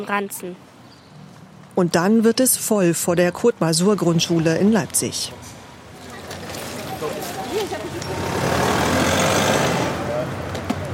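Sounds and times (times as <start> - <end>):
speech: 0.0 - 0.7, 1.8 - 5.6
cars driving past: 3.2 - 10.9.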